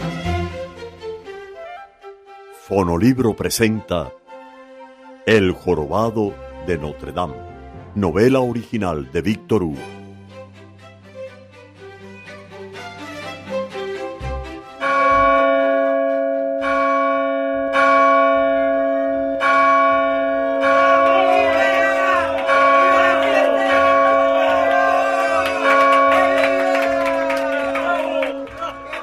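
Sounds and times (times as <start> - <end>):
speech: 2.7 - 4.2, 5.3 - 10.0
all the church bells pealing: 14.8 - 29.0.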